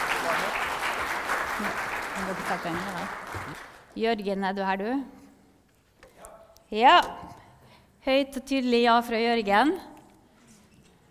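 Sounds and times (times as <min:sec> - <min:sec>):
audience applause: 0:00.0 - 0:03.9
speech: 0:01.6 - 0:05.2, 0:06.7 - 0:07.3, 0:08.0 - 0:09.9.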